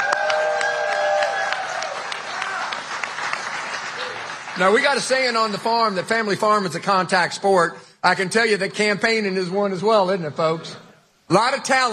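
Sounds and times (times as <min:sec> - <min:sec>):
sustained high cheer: 0:00.0 - 0:04.6
crowd applauding: 0:00.0 - 0:06.0
speech: 0:04.6 - 0:11.9.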